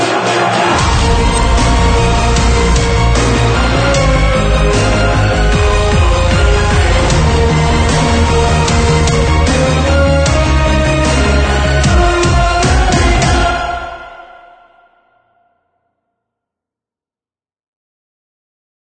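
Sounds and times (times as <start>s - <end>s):
epic hybrid trailer dubstep build: 0.0s - 14.1s.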